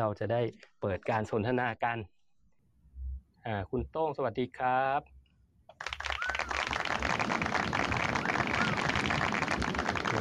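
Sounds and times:
speech: 0.0 - 2.2, 3.4 - 5.2
applause sound effect: 5.8 - 10.2.

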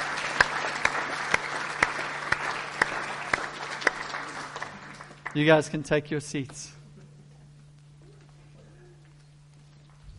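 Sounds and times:
audience applause: 0.0 - 5.9
speech: 5.3 - 6.8.

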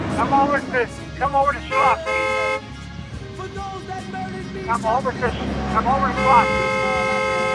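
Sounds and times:
speech: 0.2 - 2.2, 4.7 - 6.7
car horn honking in a parking lot beside a library: 1.6 - 2.7, 5.8 - 7.5.

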